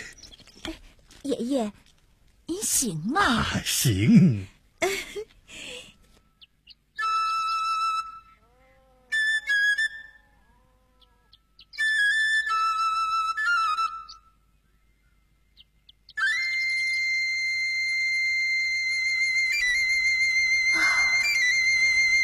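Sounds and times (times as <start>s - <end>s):
speech: 1.2s - 1.8s, 2.5s - 5.3s
eagle-bone flute being played: 7.0s - 8.4s, 11.8s - 14.2s, 16.2s - 22.2s.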